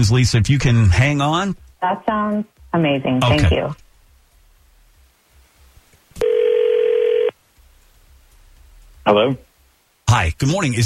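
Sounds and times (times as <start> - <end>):
speech: 0.0 - 3.8, 9.0 - 9.5, 10.1 - 10.8
ringback tone on an outgoing phone call: 6.2 - 7.4.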